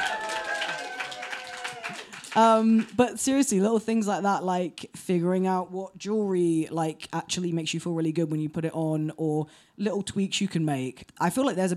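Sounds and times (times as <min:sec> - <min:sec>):
cheering: 0:00.0 - 0:02.4
audience applause: 0:00.0 - 0:03.0
speech: 0:02.3 - 0:11.7.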